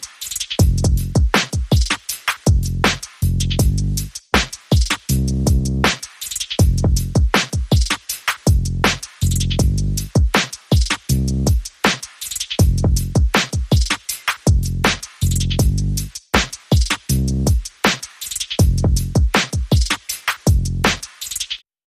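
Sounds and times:
drums: 0:00.0 - 0:21.6
bass: 0:00.6 - 0:01.2, 0:02.5 - 0:06.0, 0:06.6 - 0:07.2, 0:08.5 - 0:10.2, 0:11.0 - 0:11.6, 0:12.6 - 0:13.3, 0:14.5 - 0:16.2, 0:17.0 - 0:17.6, 0:18.6 - 0:19.2, 0:20.5 - 0:21.1.

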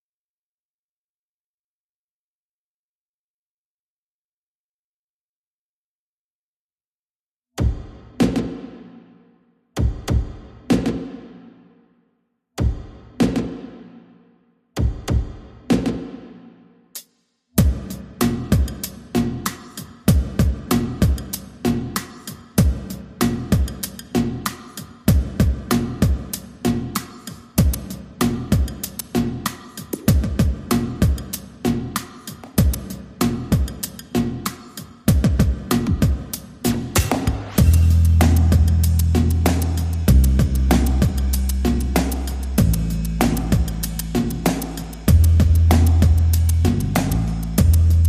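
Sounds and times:
drums: 0:07.6 - 0:09.1, 0:09.8 - 0:11.5, 0:12.6 - 0:14.0, 0:14.8 - 0:48.0
bass: 0:17.6 - 0:22.1, 0:22.7 - 0:34.6, 0:35.2 - 0:48.0.

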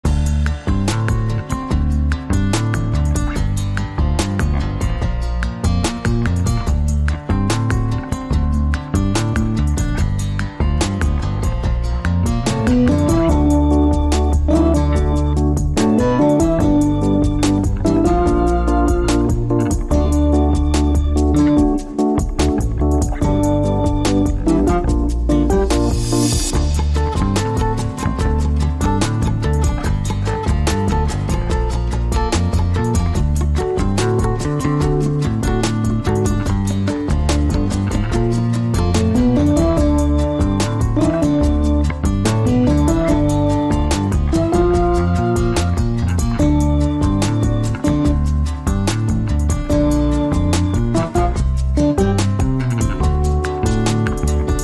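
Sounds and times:
country hip hop music: 0:00.0 - 0:54.6.

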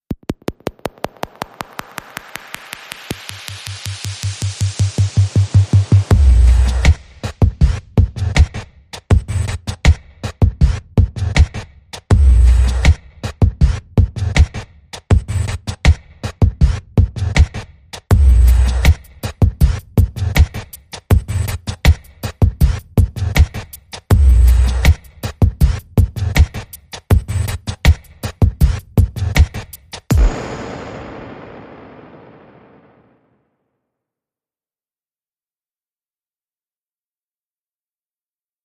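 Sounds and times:
music beat: 0:00.1 - 0:14.5, 0:16.4 - 0:32.6.

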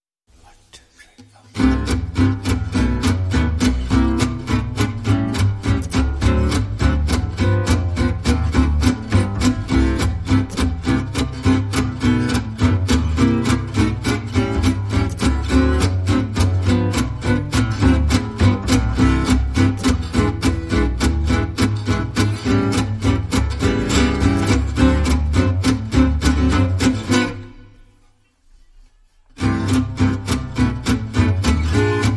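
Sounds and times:
guitars: 0:01.1 - 0:32.1
bass: 0:01.5 - 0:27.8, 0:29.3 - 0:32.1.

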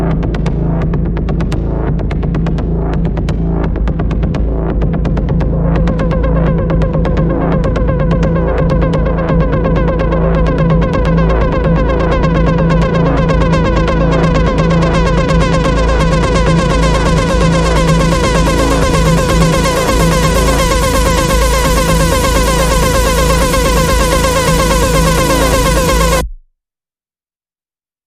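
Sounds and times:
synth pads: 0:00.0 - 0:26.4
synth pulses: 0:05.6 - 0:26.4.

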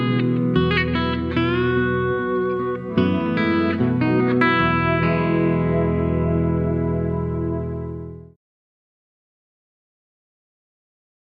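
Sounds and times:
electric slide guitar ballad: 0:00.0 - 0:08.3.

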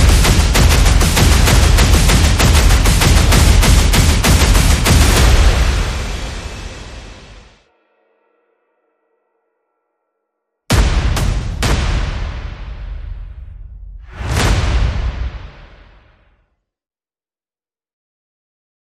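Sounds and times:
percussion: 0:00.0 - 0:08.6, 0:10.7 - 0:16.1.

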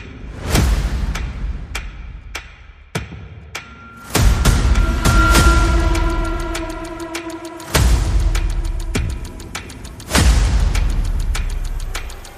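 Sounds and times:
percussion: 0:00.0 - 0:12.3
sound effects: 0:03.8 - 0:12.3.

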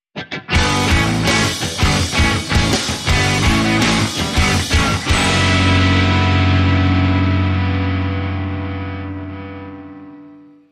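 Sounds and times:
rock power chords: 0:00.2 - 0:10.7.

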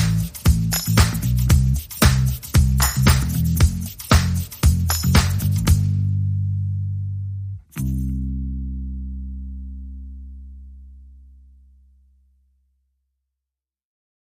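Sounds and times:
drums: 0:00.0 - 0:06.0
bass: 0:00.0 - 0:13.4.

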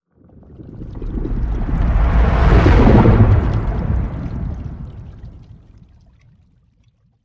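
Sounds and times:
sea serpent transition effect: 0:01.0 - 0:05.6.

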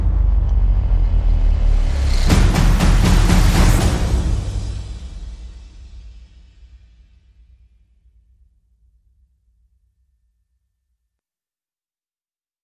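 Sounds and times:
percussion: 0:00.0 - 0:08.4.

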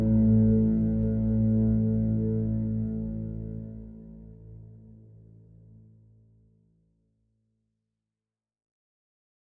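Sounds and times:
bass: 0:00.0 - 0:07.0.

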